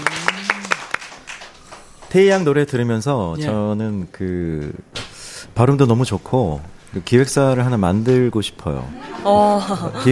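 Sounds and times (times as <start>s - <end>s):
audience clapping: 0.0s - 2.5s
speech: 2.1s - 5.0s, 5.6s - 10.1s
laughter: 8.9s - 10.1s.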